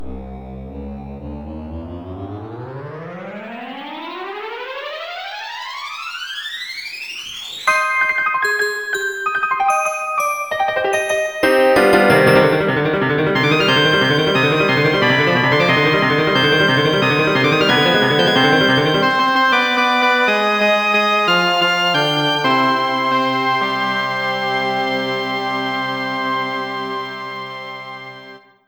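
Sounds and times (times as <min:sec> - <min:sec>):
frantic MIDI intro music: 0:07.7 - 0:28.4.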